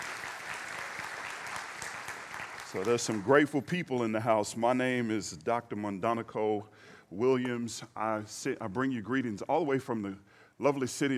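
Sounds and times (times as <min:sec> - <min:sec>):
congregation clapping at a morning worship service: 0:00.0 - 0:03.8
speech: 0:02.7 - 0:11.1.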